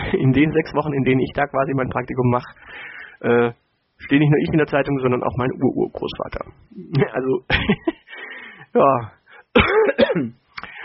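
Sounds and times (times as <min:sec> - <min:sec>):
speech: 0:00.1 - 0:08.0, 0:08.7 - 0:10.4
man coughing while still a little ill: 0:09.5 - 0:10.4
man clearing throat: 0:09.6 - 0:10.4.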